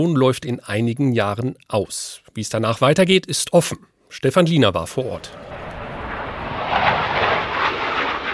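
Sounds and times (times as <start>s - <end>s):
speech: 0.0s - 5.6s
Eurofighter jet flying low over the Airbus factory at Manching: 5.2s - 8.3s.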